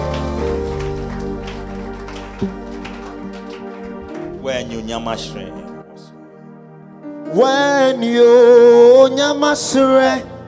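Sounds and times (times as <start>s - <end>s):
audience clapping: 0.0s - 5.5s
speech: 2.4s - 2.6s, 4.5s - 5.6s, 7.3s - 10.3s.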